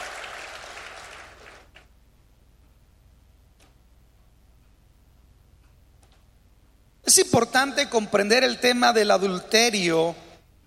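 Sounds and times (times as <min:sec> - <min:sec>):
audience applause: 0:00.0 - 0:01.7
speech: 0:07.1 - 0:10.2.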